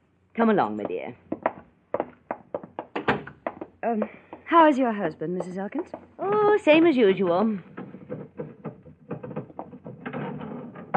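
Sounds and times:
speech: 0:00.4 - 0:01.3, 0:03.8 - 0:08.2
sticking elevator door being forced open: 0:07.8 - 0:10.9.

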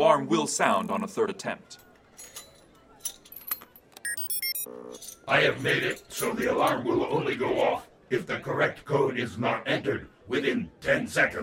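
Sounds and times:
speech: 0:00.1 - 0:02.3, 0:04.7 - 0:11.4
lock being picked: 0:01.8 - 0:04.2.

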